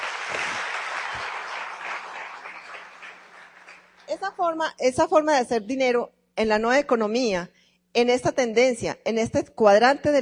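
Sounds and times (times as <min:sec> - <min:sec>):
audience applause: 0:00.0 - 0:04.1
speech: 0:04.1 - 0:10.1.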